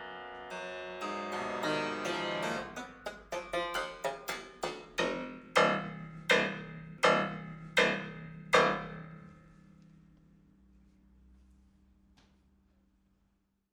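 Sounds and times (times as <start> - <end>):
piano improvisation: 0.6 - 9.3.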